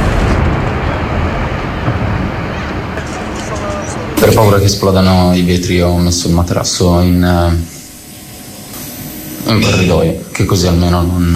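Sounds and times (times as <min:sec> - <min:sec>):
bombs exploding: 0:00.0 - 0:05.4
speech: 0:04.3 - 0:07.8, 0:09.5 - 0:11.3.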